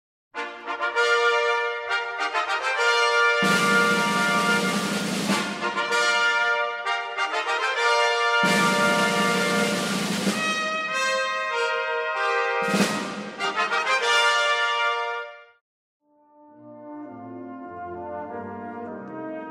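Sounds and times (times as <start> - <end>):
fanfare: 0.4 - 15.5.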